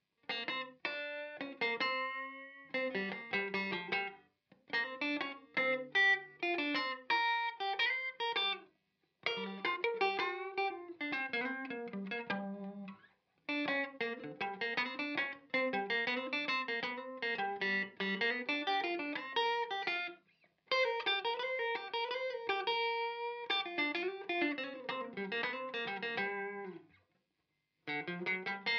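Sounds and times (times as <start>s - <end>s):
blues music: 0.3s - 27.0s, 27.8s - 28.7s.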